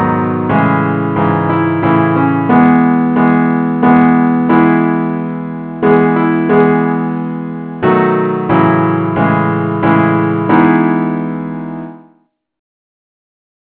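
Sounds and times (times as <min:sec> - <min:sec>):
musical accompaniment in E: 0:00.0 - 0:12.0.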